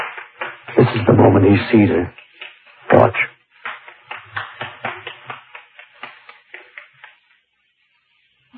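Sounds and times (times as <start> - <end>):
person applauding: 0.0 - 1.4, 2.1 - 7.4
speech: 0.8 - 2.2.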